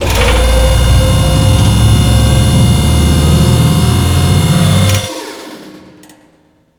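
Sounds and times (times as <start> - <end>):
lift: 0.0 - 5.4.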